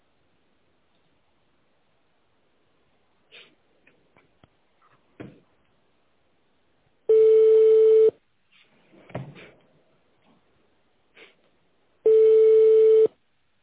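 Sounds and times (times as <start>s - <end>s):
telephone line ringing tones while waiting for answer: 7.1s - 8.2s, 12.0s - 13.1s.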